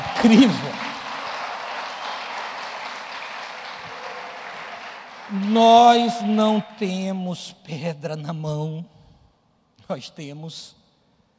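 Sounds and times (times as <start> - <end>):
audience applause: 0.0 - 6.8
speech: 0.2 - 0.8, 5.5 - 9.0, 9.9 - 10.8.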